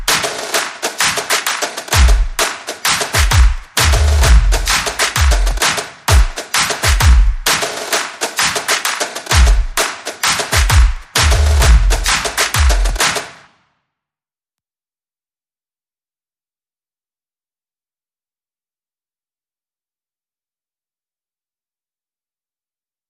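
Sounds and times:
percussion: 0.0s - 13.6s.

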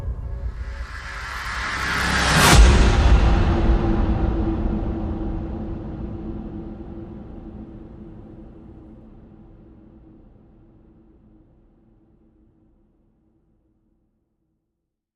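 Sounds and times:
percussion: 0.0s - 11.5s.

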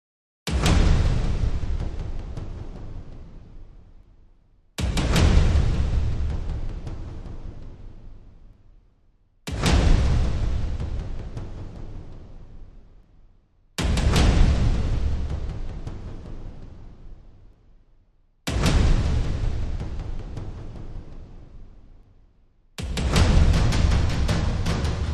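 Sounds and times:
drums and percussion: 0.5s - 17.8s, 18.4s - 25.1s.

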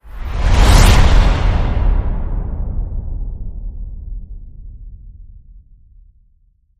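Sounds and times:
whoosh: 0.0s - 4.6s.

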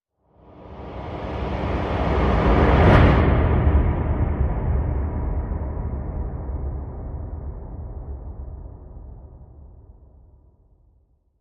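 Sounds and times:
tidal wave whoosh: 0.5s - 5.4s.

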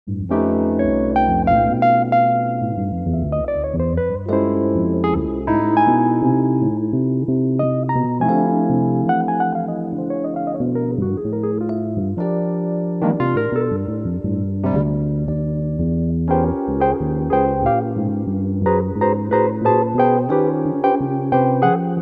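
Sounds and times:
bass music: 0.1s - 22.0s.

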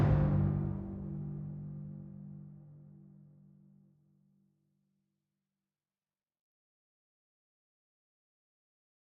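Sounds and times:
drums: 0.0s - 1.4s.

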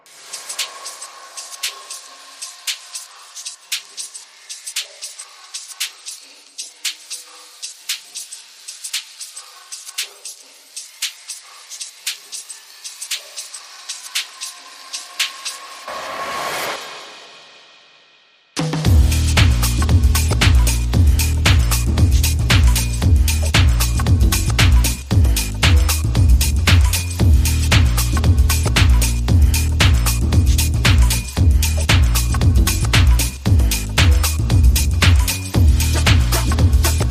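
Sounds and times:
drums: 0.0s - 37.0s
bass: 18.6s - 37.0s.

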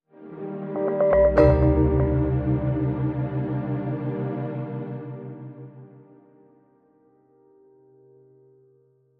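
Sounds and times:
sound logo: 1.0s - 6.0s.

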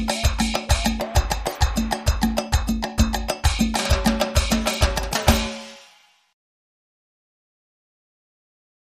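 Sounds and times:
percussion: 0.0s - 6.4s.

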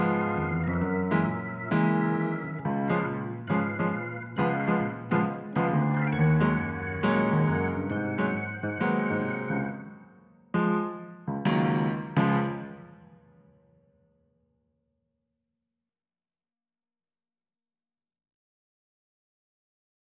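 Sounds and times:
keyboard playing: 0.0s - 13.1s.

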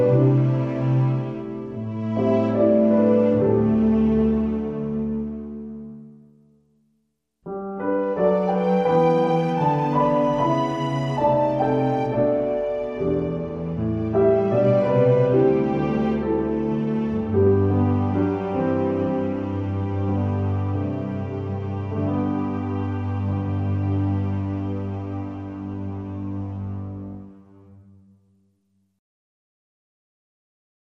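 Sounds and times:
underscore music with strings: 0.0s - 6.3s, 7.6s - 28.0s.

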